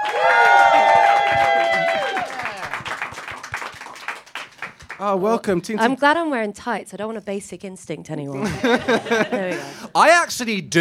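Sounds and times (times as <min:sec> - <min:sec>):
audience applause: 0:00.0 - 0:05.6
speech: 0:05.0 - 0:10.7
laughter: 0:08.3 - 0:10.0.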